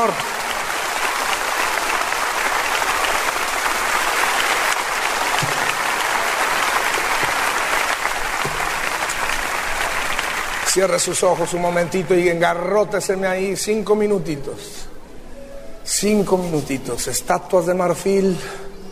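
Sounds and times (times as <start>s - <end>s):
speech: 0.0s - 0.3s, 10.8s - 14.9s, 15.9s - 18.7s
audience applauding: 0.0s - 12.7s.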